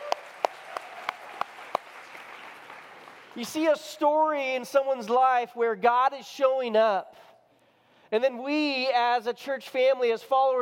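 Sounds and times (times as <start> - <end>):
sharp hand claps: 0.0 - 3.4
speech: 3.4 - 7.3, 8.1 - 10.6.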